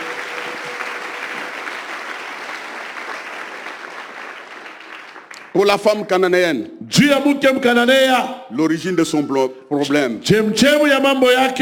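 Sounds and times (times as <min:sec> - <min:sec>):
church congregation applauding during a sermon: 0:00.0 - 0:05.8
speech: 0:05.6 - 0:11.6.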